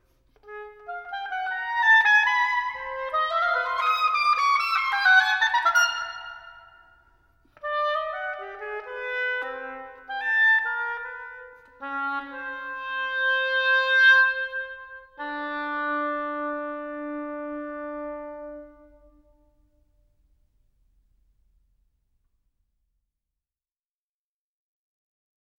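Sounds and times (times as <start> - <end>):
solo oboe piece: 0.1 - 19.8.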